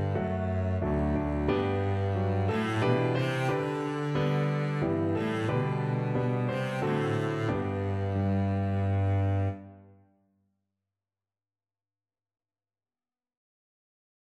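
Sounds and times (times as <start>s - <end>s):
double bass playing a national anthem: 0.0s - 9.6s.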